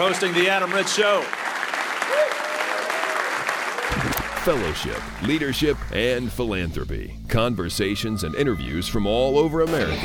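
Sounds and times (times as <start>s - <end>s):
speech: 0.0s - 2.5s, 4.4s - 10.0s
audience round of applause: 0.0s - 5.4s.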